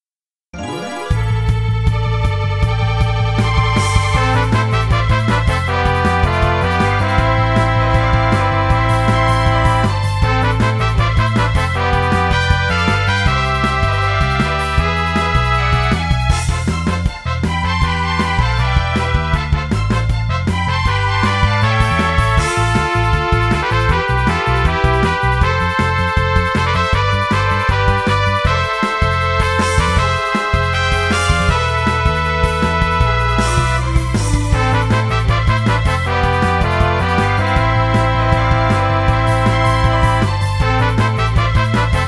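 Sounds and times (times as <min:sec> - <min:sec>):
battle music: 0:00.6 - 0:42.0.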